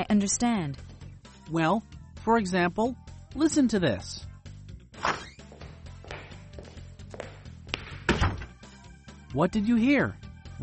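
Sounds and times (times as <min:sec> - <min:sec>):
speech: 0:00.0 - 0:00.9, 0:01.5 - 0:04.3, 0:09.3 - 0:10.2
door creaking open: 0:05.0 - 0:05.5, 0:08.1 - 0:08.6
footsteps thudding across the floor: 0:05.5 - 0:08.6
door shutting with a soft thunk: 0:08.0 - 0:08.6.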